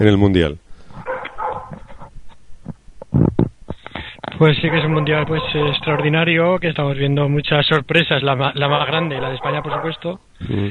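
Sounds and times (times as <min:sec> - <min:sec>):
speech: 0:00.0 - 0:00.6, 0:04.4 - 0:10.6
dog barking and yipping: 0:01.0 - 0:01.9, 0:04.5 - 0:06.4, 0:08.7 - 0:10.2.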